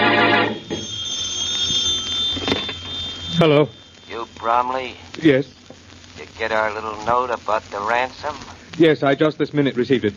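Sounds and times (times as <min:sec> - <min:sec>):
telephone bell ringing: 0:00.0 - 0:04.3
steady high whine: 0:00.0 - 0:08.8
speech: 0:03.4 - 0:05.6, 0:06.4 - 0:10.1.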